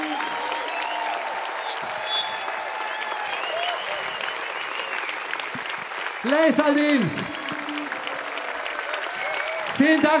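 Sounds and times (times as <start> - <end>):
brief high whistles: 0.0 - 5.2
concert audience clapping in Nürnberg: 0.0 - 10.1
speech: 6.2 - 7.4, 9.8 - 10.1.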